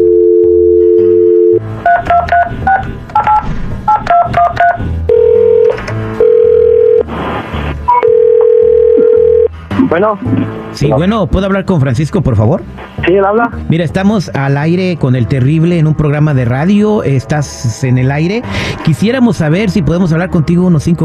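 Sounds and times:
telephone dial tone: 0:00.0 - 0:02.2, 0:05.1 - 0:07.1, 0:07.9 - 0:09.5
touch-tone telephone dialing beeps: 0:00.0 - 0:07.0, 0:07.9 - 0:09.5
speech: 0:09.9 - 0:21.0.

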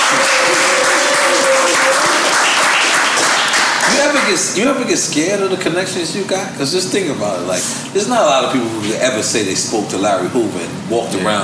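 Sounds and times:
crowd applause: 0:00.0 - 0:04.4
speech: 0:04.3 - 0:11.4.

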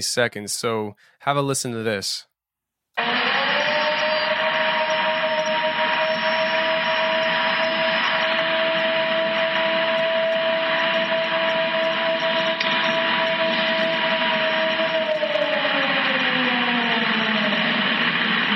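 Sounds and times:
speech: 0:00.0 - 0:02.3
long drawn-out howl: 0:03.0 - 0:18.4.

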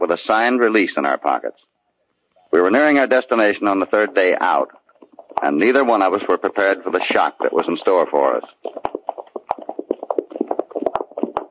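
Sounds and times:
speech: 0:00.0 - 0:01.7, 0:02.5 - 0:04.8, 0:05.4 - 0:09.0
horses' hooves clip-clopping on the road during a long ride: 0:02.8 - 0:11.4.

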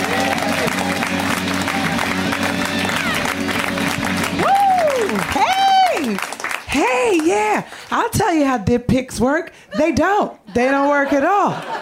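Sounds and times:
crowd whooping: 0:00.0 - 0:06.3
audience at a stand-up comedy show clapping: 0:00.0 - 0:08.1
speech: 0:08.3 - 0:11.8
laughter: 0:09.7 - 0:11.8.

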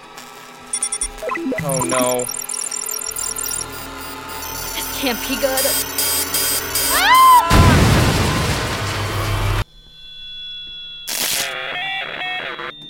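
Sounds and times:
electronic robot beeps and bops: 0:00.7 - 0:03.8, 0:04.4 - 0:06.9
speech: 0:01.4 - 0:02.4, 0:05.0 - 0:06.0
noisy crashing burst: 0:07.5 - 0:09.6.

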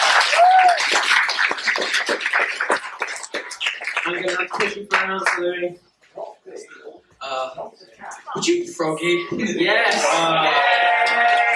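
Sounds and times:
audience applause: 0:00.0 - 0:05.4, 0:10.6 - 0:11.5
speech: 0:04.2 - 0:05.9, 0:07.3 - 0:11.3.

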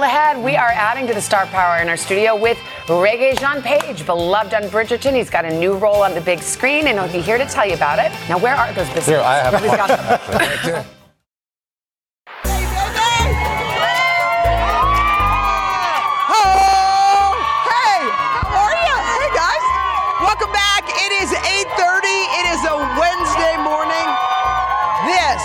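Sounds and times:
speech: 0:00.0 - 0:11.0
laughter: 0:09.2 - 0:11.0
large outdoor crowd cheering and whooping: 0:12.4 - 0:25.4.

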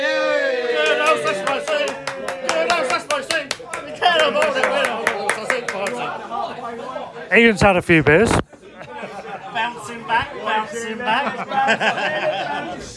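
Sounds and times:
group of people whooping and cheering: 0:00.0 - 0:06.4
hands clapping: 0:00.8 - 0:06.1
speech: 0:07.3 - 0:08.5, 0:10.1 - 0:12.9
laughter: 0:08.5 - 0:12.9.

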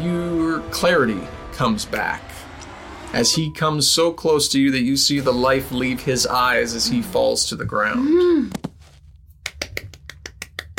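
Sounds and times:
speech: 0:00.8 - 0:02.4, 0:03.1 - 0:08.6
person clapping: 0:09.4 - 0:10.7.

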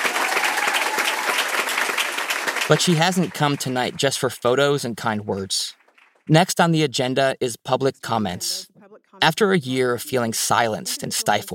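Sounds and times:
audience applause at a school board meeting: 0:00.0 - 0:04.7
speech: 0:02.7 - 0:11.5.

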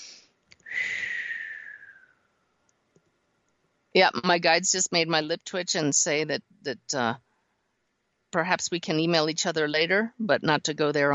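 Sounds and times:
deep breath: 0:00.1 - 0:02.0
speech: 0:03.9 - 0:07.2, 0:08.3 - 0:11.1.

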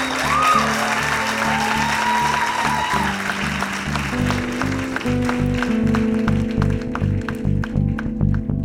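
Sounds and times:
audience applause: 0:00.0 - 0:08.5.

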